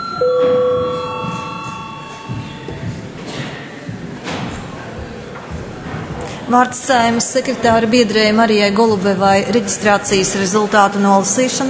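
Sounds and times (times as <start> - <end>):
parliament session electronic bell tone: 0.0 - 2.9
low murmur and shuffling: 0.2 - 11.6
speech: 6.5 - 11.6.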